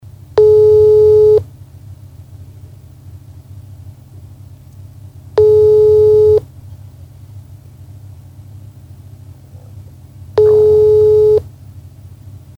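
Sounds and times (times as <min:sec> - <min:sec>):
telephone: 0:00.4 - 0:01.4, 0:05.4 - 0:06.4, 0:10.4 - 0:11.4.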